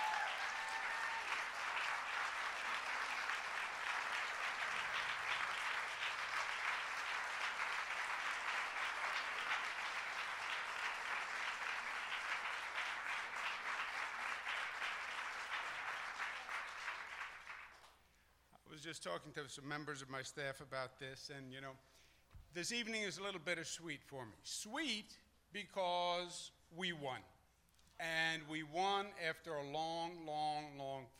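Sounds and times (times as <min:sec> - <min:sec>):
audience round of applause: 0:00.0 - 0:17.9
speech: 0:18.8 - 0:27.4, 0:28.0 - 0:31.1.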